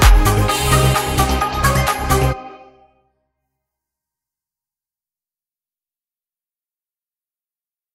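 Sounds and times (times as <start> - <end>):
instrumental music: 0.0 - 3.0.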